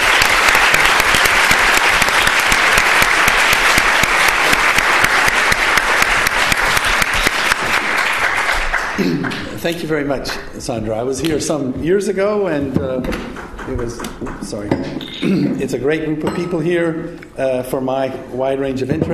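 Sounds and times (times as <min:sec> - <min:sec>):
audience applause welcoming a lecturer: 0:00.0 - 0:09.8
speech: 0:09.6 - 0:19.1.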